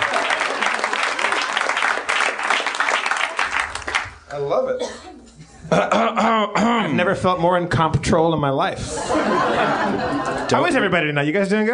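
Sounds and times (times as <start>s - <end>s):
audience applause: 0.0s - 4.2s
speech: 4.4s - 11.7s
laughter: 5.3s - 6.6s, 8.8s - 11.1s.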